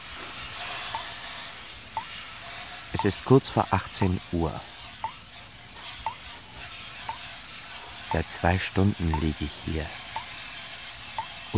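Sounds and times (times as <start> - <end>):
steam hissing from the pipes of a city sauna: 0.0 - 11.5
speech: 2.9 - 4.8, 8.1 - 10.0.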